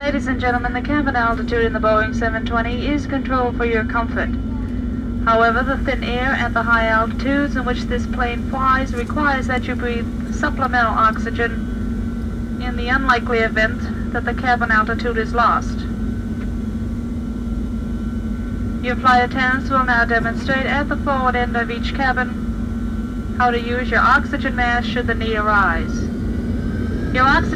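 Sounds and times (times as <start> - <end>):
jet airplane on a trip: 0.0 - 27.5.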